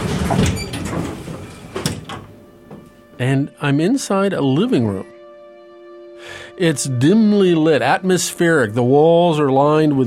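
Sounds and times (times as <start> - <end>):
elevator doors opening: 0.0 - 2.9
speech: 3.2 - 5.1, 6.6 - 10.0.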